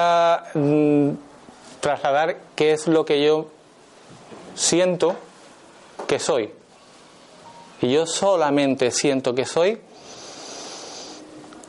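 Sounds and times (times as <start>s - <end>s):
speech: 0.0s - 5.3s, 6.1s - 6.6s, 7.8s - 10.0s
long exhaled breath: 10.0s - 11.3s.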